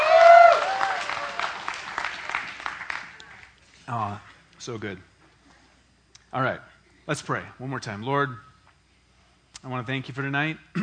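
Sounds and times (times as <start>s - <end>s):
church congregation applause: 0.0s - 3.6s
speech: 3.9s - 5.1s, 6.3s - 8.5s, 9.6s - 10.8s.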